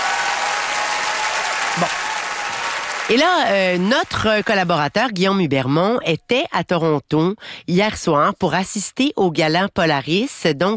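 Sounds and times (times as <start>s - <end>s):
audience applause for a band: 0.0s - 4.5s
speech: 1.8s - 2.0s, 3.1s - 10.7s.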